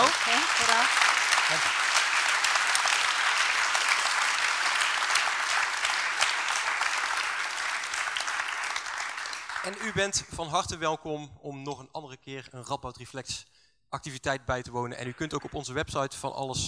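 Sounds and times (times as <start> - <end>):
audience applause for the speakers: 0.0 - 10.2
speech: 1.5 - 1.8, 9.6 - 16.6.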